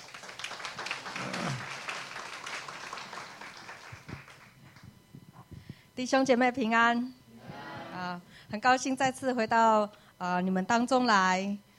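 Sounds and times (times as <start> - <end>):
audience applause welcoming a speaker: 0.0 - 4.6
speech: 6.0 - 7.2, 8.2 - 11.6.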